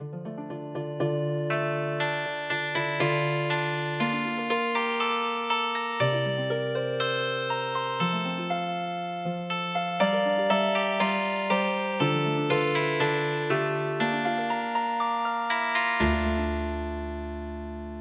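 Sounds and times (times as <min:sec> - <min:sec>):
traditional healing harp music: 0:00.0 - 0:17.9.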